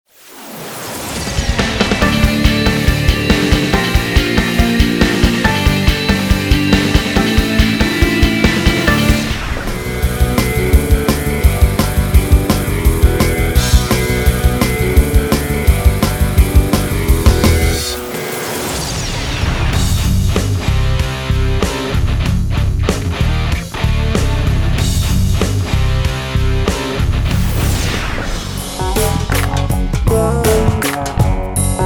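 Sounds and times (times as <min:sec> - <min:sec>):
rock music: 0:01.0 - 0:31.8.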